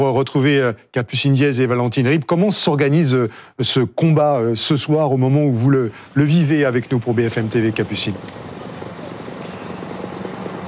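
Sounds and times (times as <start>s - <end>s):
speech: 0.0s - 8.5s
firefighting Dragon helicopter flying overhead: 6.8s - 10.6s.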